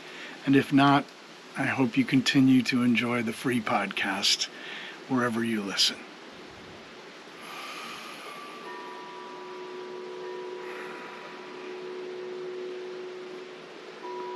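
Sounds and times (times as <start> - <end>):
steady breathy hiss of wind: 0.0 - 14.3
speech: 0.4 - 6.1
wind chimes ringing softly: 7.4 - 14.3.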